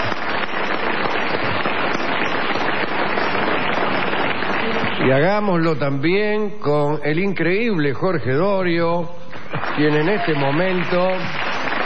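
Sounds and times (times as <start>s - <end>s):
crowd ovation applause: 0.0s - 5.4s, 9.3s - 11.8s
speech: 5.1s - 9.2s, 9.8s - 11.4s.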